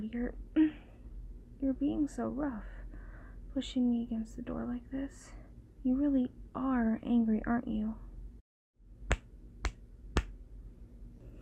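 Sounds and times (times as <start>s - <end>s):
speech: 0.1s - 0.6s, 1.6s - 2.8s, 3.6s - 8.0s
spanking slaps: 9.1s - 10.4s.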